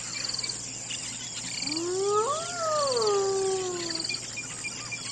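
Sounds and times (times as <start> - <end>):
hyena whooping: 1.7 - 4.1.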